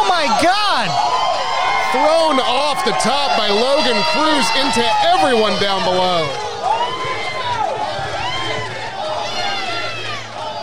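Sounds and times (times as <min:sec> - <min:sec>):
wrestling commentator talking: 0:00.0 - 0:01.0, 0:01.8 - 0:06.4
speech: 0:02.0 - 0:06.5
crowd chanting at a wrestling event: 0:06.3 - 0:10.6.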